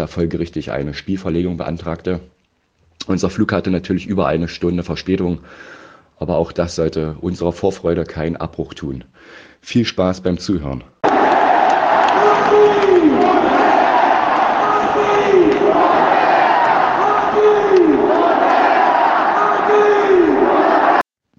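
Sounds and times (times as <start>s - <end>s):
speech: 0.0s - 2.4s, 3.0s - 11.2s
stadium crowd roaring for Joaquín Correa's goal against Monza: 11.0s - 21.1s.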